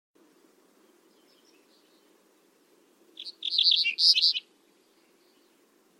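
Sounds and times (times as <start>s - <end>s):
bird chirping: 0.8s - 2.2s, 3.2s - 5.7s.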